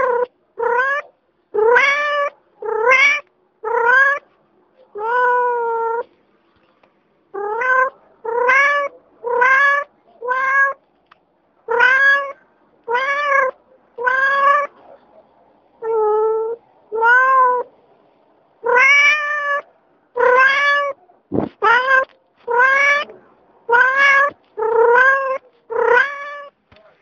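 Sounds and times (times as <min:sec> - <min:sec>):
domestic cat meowing: 0:00.0 - 0:04.2, 0:04.9 - 0:06.1, 0:07.4 - 0:10.8, 0:11.7 - 0:14.8, 0:15.8 - 0:17.7, 0:18.6 - 0:21.0, 0:21.6 - 0:23.1, 0:23.7 - 0:26.6.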